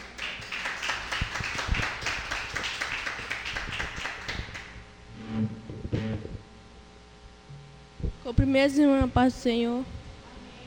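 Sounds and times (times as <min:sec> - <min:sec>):
audience clapping hands: 0:00.0 - 0:04.9
speech: 0:08.3 - 0:10.0.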